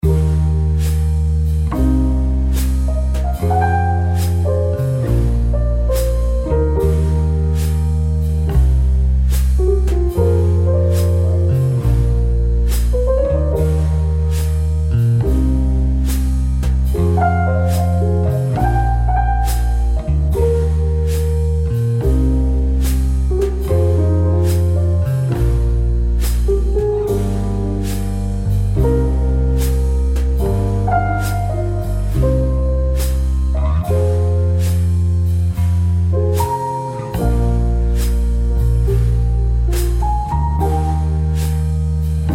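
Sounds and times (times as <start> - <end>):
relaxing coffee shop jazz: 0.0 - 42.3.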